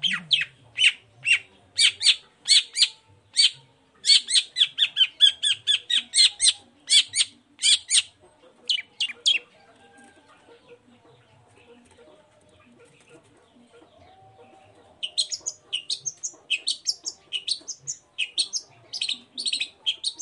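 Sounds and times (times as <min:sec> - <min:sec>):
long-tailed shrike chattering song: 0:00.0 - 0:09.4, 0:15.0 - 0:20.2.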